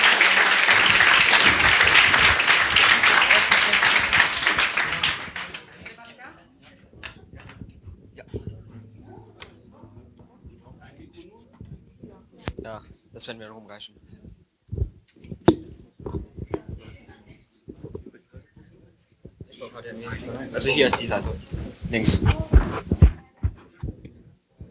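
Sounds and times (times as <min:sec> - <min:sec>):
audience applause for a team on stage: 0:00.0 - 0:06.2
speech: 0:13.3 - 0:14.2, 0:19.8 - 0:22.4.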